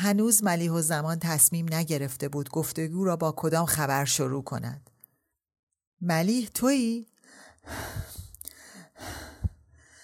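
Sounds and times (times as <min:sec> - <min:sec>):
speech: 0:00.0 - 0:04.9, 0:06.0 - 0:08.1
woman panting from spring house cleaning: 0:07.3 - 0:10.0.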